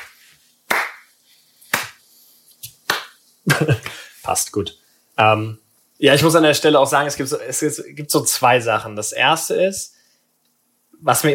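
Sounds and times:
single hand clap for editing sync: 0:00.0 - 0:01.1, 0:01.7 - 0:02.0, 0:02.6 - 0:04.0
speech: 0:03.5 - 0:10.0, 0:11.0 - 0:11.3.

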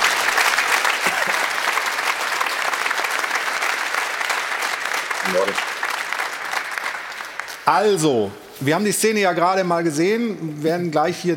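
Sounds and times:
studio audience applause: 0:00.0 - 0:08.0
speech: 0:05.3 - 0:05.7, 0:07.7 - 0:11.3.

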